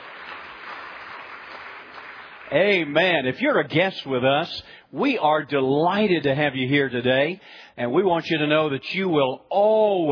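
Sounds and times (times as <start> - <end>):
church congregation clapping: 0.0 - 3.7
speech: 2.5 - 10.1.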